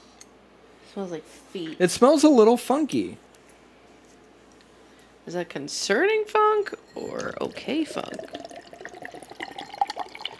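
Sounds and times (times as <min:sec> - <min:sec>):
speech: 0:01.0 - 0:03.3, 0:05.3 - 0:08.5
drink being poured into a glass: 0:07.0 - 0:10.3.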